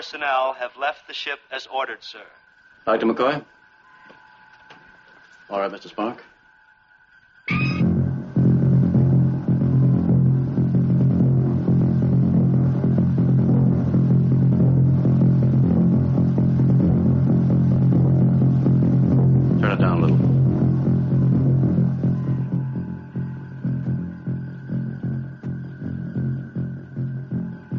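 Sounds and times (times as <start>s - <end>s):
speech: 0.0s - 3.6s, 5.5s - 6.3s
steady faint hum: 0.0s - 27.7s
combined heartbeats of many people: 7.5s - 27.7s.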